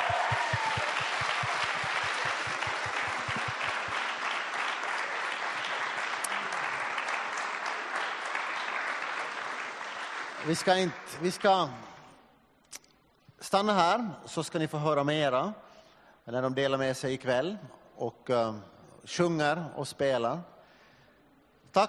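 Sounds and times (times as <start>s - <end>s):
audience applause: 0.0s - 11.4s
speech: 10.5s - 11.9s, 13.5s - 15.6s, 16.3s - 20.5s.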